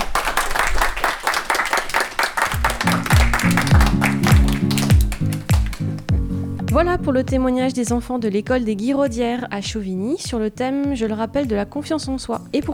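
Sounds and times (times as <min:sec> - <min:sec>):
children clapping: 0:00.0 - 0:06.2
rising musical jingle: 0:02.6 - 0:06.2
speech: 0:06.8 - 0:12.7.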